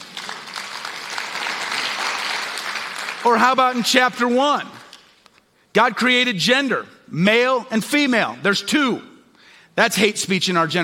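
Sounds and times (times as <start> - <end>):
audience applause: 0.0 - 3.5
speech: 3.2 - 4.8, 5.8 - 9.1, 9.8 - 10.8.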